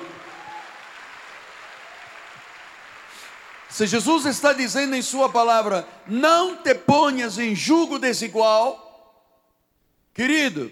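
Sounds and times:
audience applause: 0.0s - 4.2s
speech: 3.7s - 8.8s, 10.2s - 10.6s.

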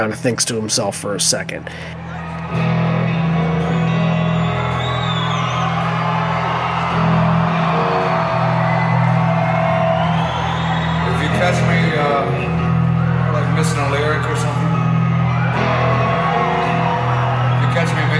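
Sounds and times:
speech: 0.0s - 2.7s
concert crowd cheering with whoops and shouts: 1.7s - 18.1s.

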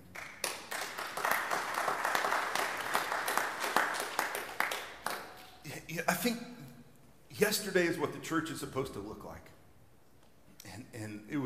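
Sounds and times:
large crowd clapping: 0.0s - 5.6s
speech: 6.0s - 6.5s, 7.4s - 9.6s, 11.0s - 11.4s.

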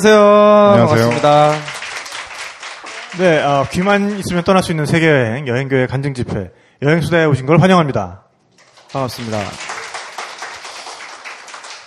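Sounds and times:
speech: 0.0s - 1.7s, 3.2s - 8.2s, 8.9s - 9.7s
group of people clapping their hands: 0.7s - 4.4s, 8.5s - 11.8s.

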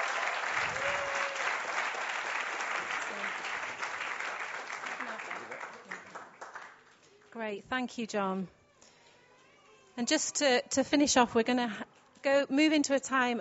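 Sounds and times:
audience cheering: 0.0s - 6.1s
audience applause: 0.0s - 7.0s
speech: 7.4s - 8.6s, 10.0s - 13.4s.

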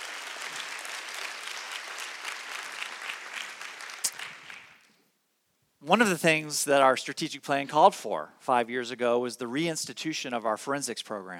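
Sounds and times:
audience round of applause: 0.0s - 4.9s
speech: 5.8s - 11.3s.

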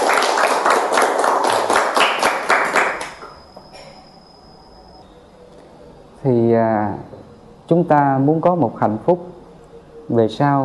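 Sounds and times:
children clapping hands: 0.0s - 3.4s
speech: 6.2s - 9.4s, 10.1s - 10.6s.

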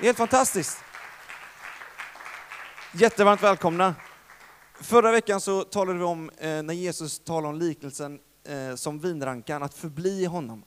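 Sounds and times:
speech: 0.0s - 0.9s, 2.9s - 4.0s, 4.8s - 10.6s
crowd applause: 0.0s - 4.9s.

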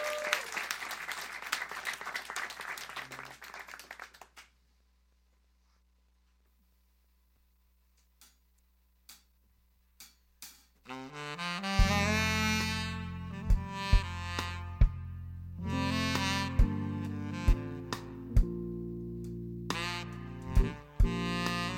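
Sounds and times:
audience applause welcoming a musician at a live music session: 0.0s - 4.5s
music: 10.0s - 21.7s.

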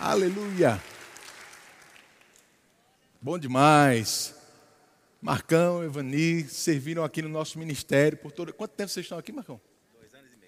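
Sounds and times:
speech: 0.0s - 0.9s, 3.2s - 4.4s, 5.2s - 9.7s
audience applause: 0.0s - 2.4s.

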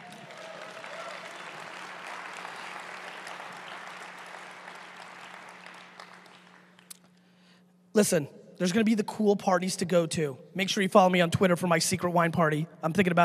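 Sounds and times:
audience applause: 0.0s - 6.9s
speech: 8.0s - 13.2s.

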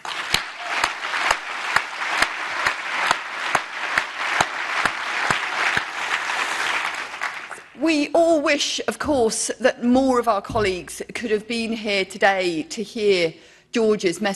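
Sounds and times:
crowd applauding: 0.0s - 7.8s
speech: 7.8s - 14.3s.

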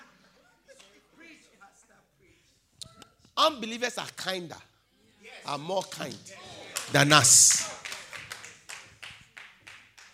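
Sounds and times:
speech: 3.4s - 4.7s, 5.5s - 7.9s
a few people clapping: 5.9s - 10.1s.

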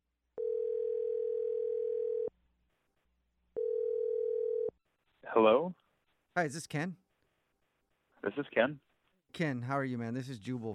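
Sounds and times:
telephone dial tone: 0.4s - 2.3s, 3.6s - 4.7s
speech: 5.4s - 7.0s, 8.2s - 10.7s.

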